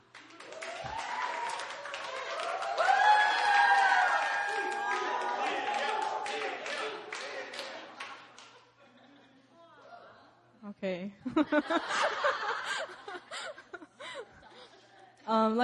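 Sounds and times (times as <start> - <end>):
audience clapping: 0.0 - 8.7
voices calling and cheering: 0.5 - 8.0
laughter: 5.2 - 9.7, 11.2 - 15.2
speech: 11.2 - 12.3, 15.3 - 15.6.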